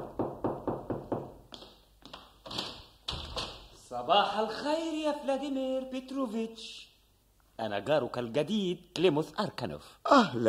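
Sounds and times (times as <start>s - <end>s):
new neighbour knocking on an apartment door: 0.0s - 1.4s
speech: 4.0s - 6.9s, 7.6s - 10.4s.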